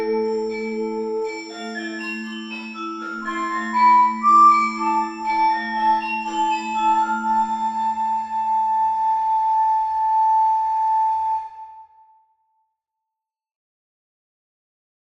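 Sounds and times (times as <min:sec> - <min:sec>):
forest fantasy music: 0:00.0 - 0:11.8.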